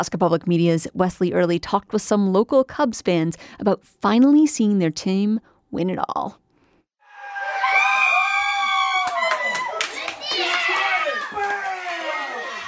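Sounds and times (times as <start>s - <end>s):
speech: 0.0s - 6.4s
friends and family cheering in a living room as the Cubs win the World Series: 7.0s - 12.6s
scattered clapping: 7.6s - 12.6s.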